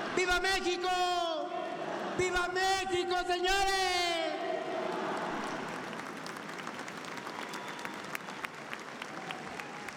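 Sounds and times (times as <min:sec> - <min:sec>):
speech: 0:00.2 - 0:01.4, 0:02.2 - 0:04.4
audience applause: 0:04.6 - 0:09.9.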